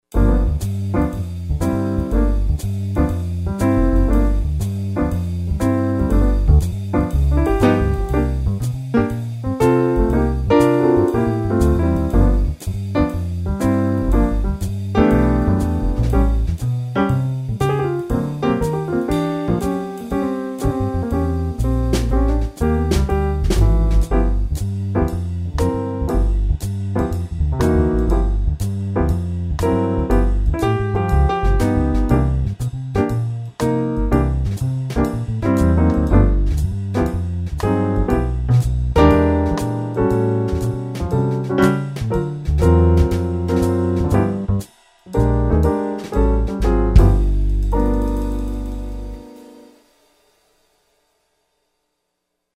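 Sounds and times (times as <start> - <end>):
jazz music: 0.0 - 49.8.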